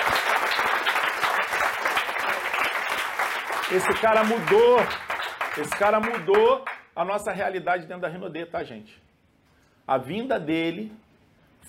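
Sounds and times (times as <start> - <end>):
audience applause: 0.0 - 6.8
speech: 3.7 - 9.0, 9.9 - 11.0.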